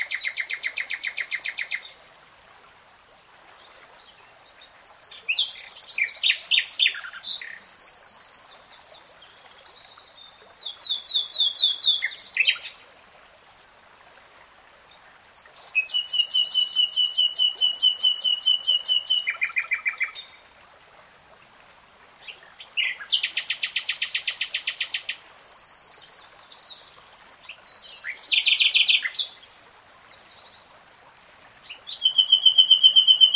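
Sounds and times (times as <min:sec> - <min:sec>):
nightingale song: 0:00.0 - 0:02.0, 0:03.2 - 0:12.8, 0:15.1 - 0:20.4, 0:21.7 - 0:30.7, 0:31.5 - 0:33.3
faint background hiss: 0:00.0 - 0:33.3.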